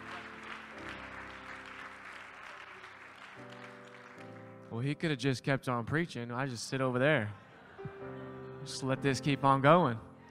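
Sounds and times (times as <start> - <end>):
audience applause at a church service: 0.0 - 4.6
speech: 4.7 - 7.4, 8.1 - 10.1.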